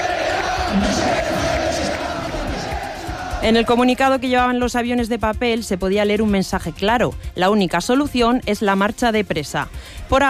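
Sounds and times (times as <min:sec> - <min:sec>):
large crowd of football fans chanting in stadium stands: 0:00.0 - 0:03.8
speech: 0:03.4 - 0:10.2.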